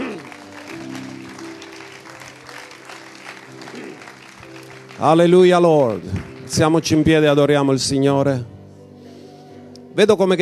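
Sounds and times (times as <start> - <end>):
audience applause: 0.0 - 7.3
speech: 5.0 - 8.5, 10.0 - 10.4.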